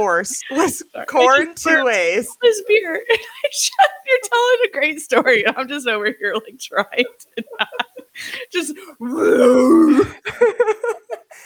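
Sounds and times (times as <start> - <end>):
speech: 0.0 - 11.0
laughter: 2.5 - 8.8, 10.1 - 11.4
burp: 9.0 - 10.2.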